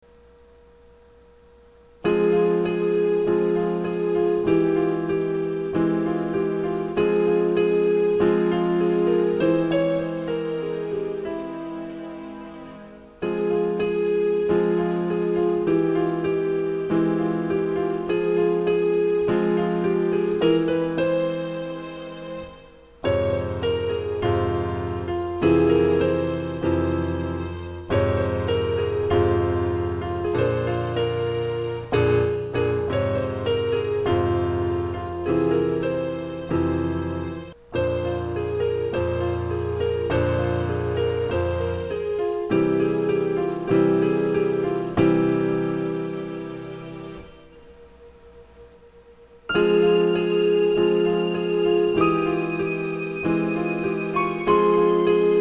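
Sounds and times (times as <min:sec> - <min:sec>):
instrumental music: 0:00.1 - 0:55.3.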